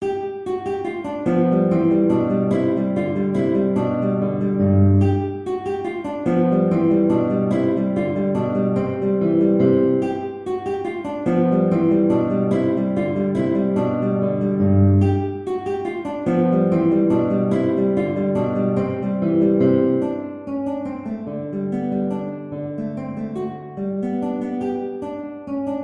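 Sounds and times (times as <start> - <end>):
guitar: 0.0 - 25.8.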